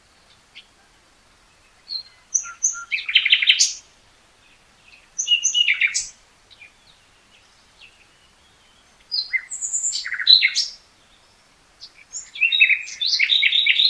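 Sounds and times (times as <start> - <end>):
Common nightingale Luscinia megarhynchos singing: 0.0 - 13.8.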